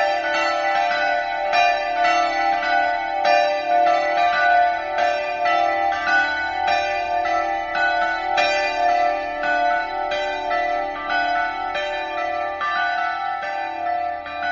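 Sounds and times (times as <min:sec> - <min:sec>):
bells: 0:00.0 - 0:14.4.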